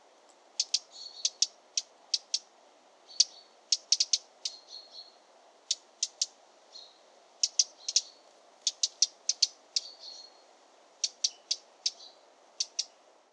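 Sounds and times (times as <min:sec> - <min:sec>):
steady background hiss: 0:00.0 - 0:13.3
Eurasian wren ticking contact calls: 0:00.6 - 0:13.0.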